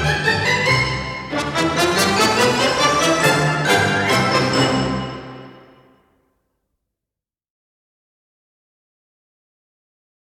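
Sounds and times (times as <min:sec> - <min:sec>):
polka music: 0:00.0 - 0:06.1.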